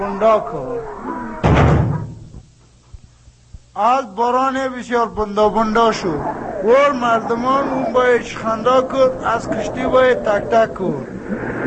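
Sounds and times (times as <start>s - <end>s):
speech: 0.0s - 1.4s, 3.8s - 11.4s
heavy door slamming shut: 1.4s - 2.4s.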